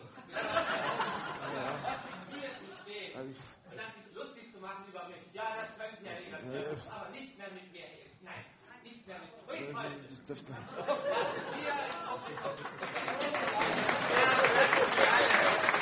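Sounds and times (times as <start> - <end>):
laughter: 0.0 - 2.9, 10.6 - 15.8
audience applause: 11.8 - 15.8.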